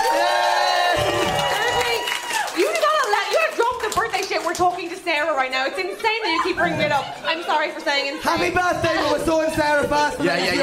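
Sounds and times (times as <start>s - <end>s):
audience cheering and whooping: 0.0s - 3.3s
audience applause: 0.0s - 5.0s
speech: 5.2s - 10.6s
laughter: 5.6s - 10.6s.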